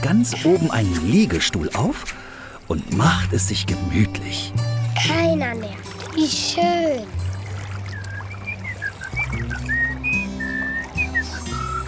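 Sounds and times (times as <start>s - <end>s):
speech: 0.0s - 7.2s
birds singing: 7.2s - 11.8s.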